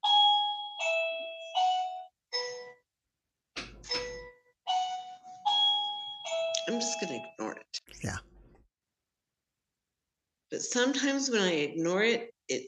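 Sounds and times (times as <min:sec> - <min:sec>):
two-tone doorbell chiming: 0:00.0 - 0:02.8, 0:03.8 - 0:07.3
speech: 0:06.7 - 0:08.3, 0:10.6 - 0:12.6.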